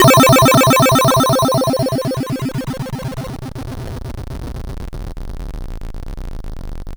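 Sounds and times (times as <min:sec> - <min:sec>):
M-Audio Venom synthesizer note C3: 0:00.0 - 0:03.3.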